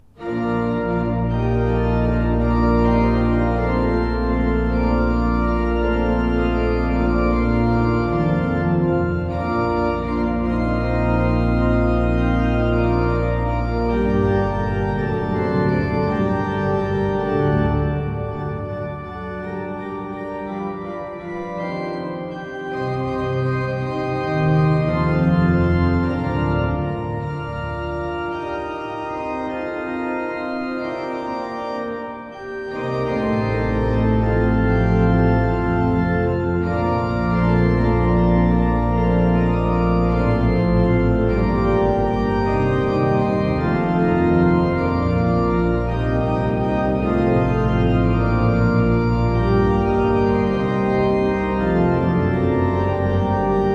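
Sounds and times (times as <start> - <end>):
Seifert pipe organ in Koeln playing: 0.0 - 53.7.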